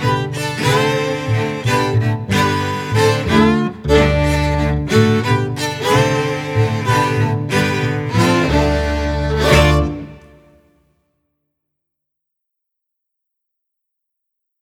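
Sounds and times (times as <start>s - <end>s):
string quartet: 0.0s - 10.6s.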